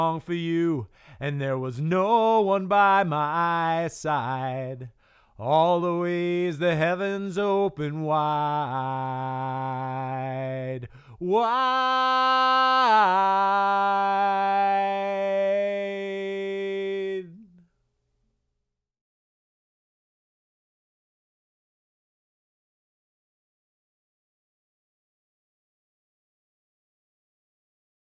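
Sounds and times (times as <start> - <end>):
person singing lead vocal: 0.0 - 17.6.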